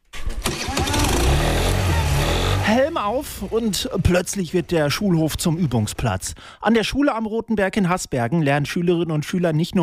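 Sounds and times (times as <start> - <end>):
moped engine starting on a school playground: 0.1 - 6.2
speech: 2.7 - 9.8.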